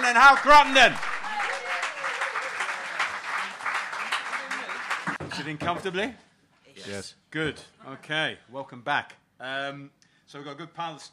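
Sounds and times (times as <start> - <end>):
audience applause: 0.0 - 5.2
speech: 0.1 - 1.1, 5.4 - 6.2, 6.8 - 11.1.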